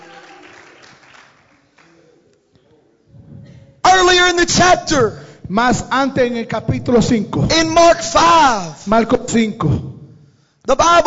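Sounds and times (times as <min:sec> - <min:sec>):
audience clapping hands: 0:00.0 - 0:02.3
speech: 0:04.3 - 0:09.9, 0:10.7 - 0:11.0.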